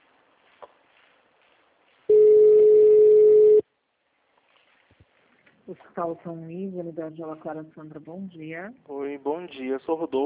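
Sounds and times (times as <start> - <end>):
telephone tone during a hospital automated call transfer: 2.1 - 3.6
speech: 5.7 - 10.2.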